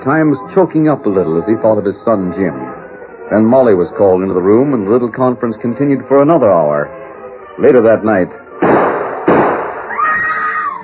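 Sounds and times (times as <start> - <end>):
speech: 0.0 - 7.0, 7.6 - 8.4
gunshot inside a house: 8.6 - 9.9.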